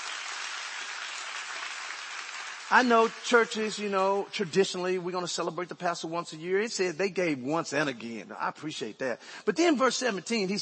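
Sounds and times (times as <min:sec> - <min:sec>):
audience hand clapping: 0:00.0 - 0:03.8
speech: 0:02.7 - 0:10.6.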